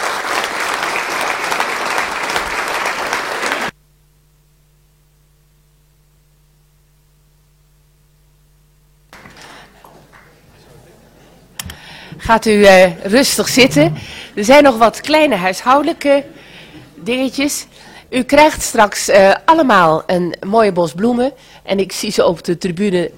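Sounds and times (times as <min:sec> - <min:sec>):
audience applause: 0:00.0 - 0:03.7, 0:09.2 - 0:10.5
speech: 0:12.3 - 0:16.4, 0:17.0 - 0:23.1.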